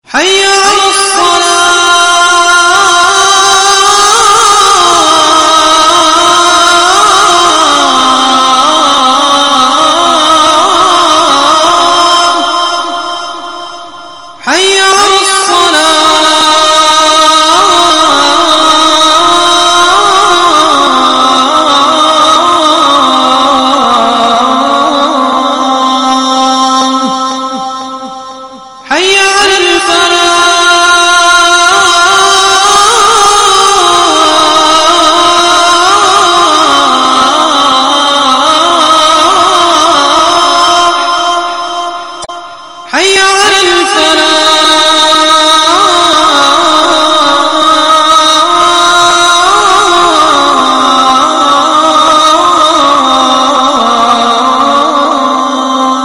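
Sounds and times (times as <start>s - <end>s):
Azan call to prayer: 0.0s - 56.0s.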